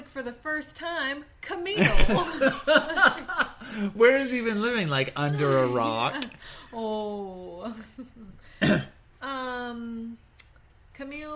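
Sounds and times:
speech: 0.2s - 10.2s, 11.0s - 11.3s
laughter: 1.8s - 3.9s
person clearing a tickle from their throat: 8.6s - 9.0s.

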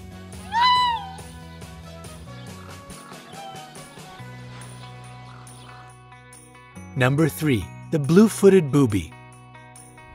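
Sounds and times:
raccoon dog high whiny mewing cry: 0.4s - 1.4s, 3.0s - 4.0s
speech: 7.0s - 9.2s.

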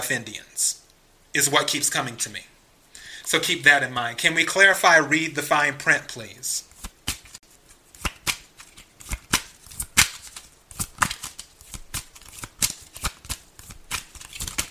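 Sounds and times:
speech: 0.0s - 2.5s, 3.3s - 6.7s
cards being shuffled and drawn from a deck: 6.6s - 14.6s.

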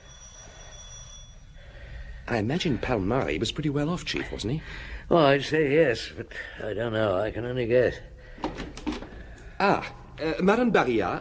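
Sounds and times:
bell ringing: 0.0s - 1.9s
speech: 2.3s - 8.5s, 9.6s - 11.1s.

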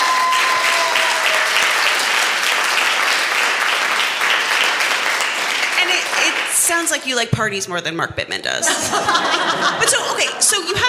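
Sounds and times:
audience round of applause: 0.0s - 6.8s
speech: 6.7s - 10.8s
laughter: 8.6s - 10.8s.

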